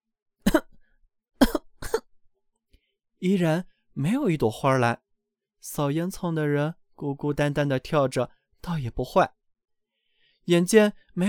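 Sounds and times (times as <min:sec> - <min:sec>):
dry coughs: 0:00.4 - 0:00.8, 0:01.4 - 0:02.1
speech: 0:03.2 - 0:05.0, 0:05.6 - 0:09.4, 0:10.4 - 0:11.2.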